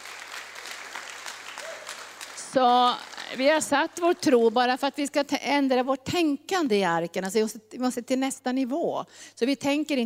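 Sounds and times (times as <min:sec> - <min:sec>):
audience applause: 0:00.0 - 0:04.2
speech: 0:02.5 - 0:10.0.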